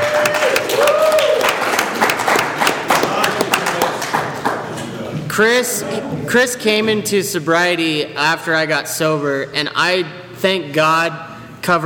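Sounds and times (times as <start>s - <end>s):
whoops and cheers: 0.0s - 1.9s
audience applause: 0.0s - 4.7s
speech: 5.4s - 11.8s.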